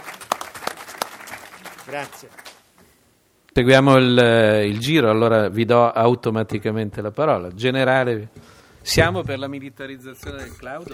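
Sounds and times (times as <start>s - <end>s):
room of people applauding: 0.0s - 2.6s
speech: 1.9s - 2.4s, 3.6s - 10.9s.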